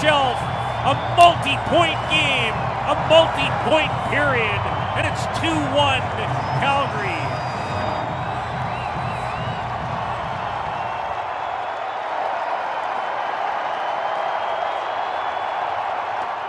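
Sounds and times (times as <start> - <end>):
speech: 0.0 - 7.2
hockey arena crowd cheering after goal: 0.0 - 16.4.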